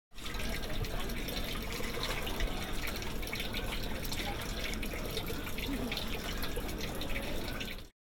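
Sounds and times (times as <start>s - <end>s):
drain near Fishop in Whitstable: 0.1s - 7.9s.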